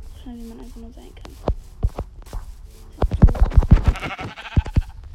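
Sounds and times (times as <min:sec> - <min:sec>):
speech: 0:00.3 - 0:02.0
sheep bleating in a video game: 0:03.7 - 0:05.0.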